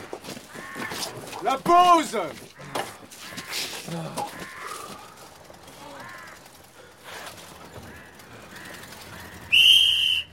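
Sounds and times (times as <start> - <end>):
speech: 1.7 - 2.5, 3.9 - 4.3
whistle blasts signalling to get up: 9.5 - 10.3.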